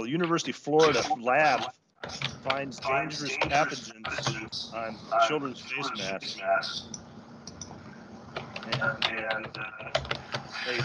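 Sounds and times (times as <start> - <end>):
speech: 0.0 - 7.0, 8.8 - 10.8
typing on a computer keyboard over a distorted remote call line: 1.0 - 4.4, 8.4 - 10.8.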